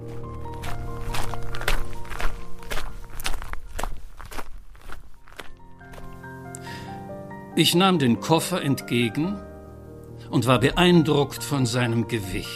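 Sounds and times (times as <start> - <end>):
footsteps with slight crunch: 0.0 - 6.8
speech: 7.6 - 9.5, 10.3 - 12.5.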